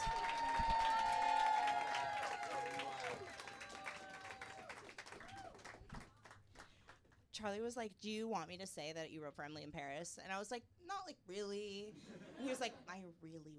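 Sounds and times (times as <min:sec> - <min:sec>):
whoops and shouts: 0:00.0 - 0:05.7
audience clapping at a live show: 0:00.0 - 0:07.2
speech: 0:07.4 - 0:13.5.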